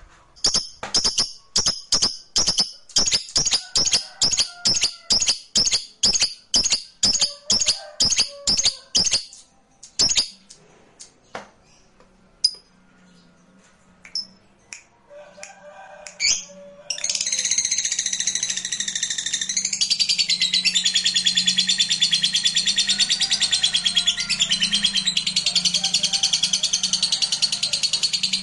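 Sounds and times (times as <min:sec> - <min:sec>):
lovebird chattering: 0:00.4 - 0:10.6, 0:16.2 - 0:28.4.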